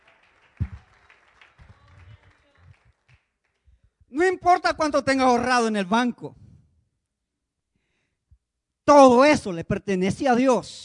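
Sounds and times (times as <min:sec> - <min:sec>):
audience applause: 0:00.0 - 0:03.6
speech: 0:04.2 - 0:06.4, 0:08.9 - 0:10.8.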